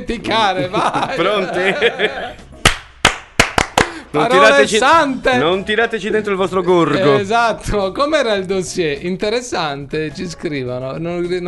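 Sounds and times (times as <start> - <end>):
speech: 0.0 - 2.4, 4.1 - 11.4
laughter: 0.3 - 2.4
Cuban-style applause: 2.6 - 4.0.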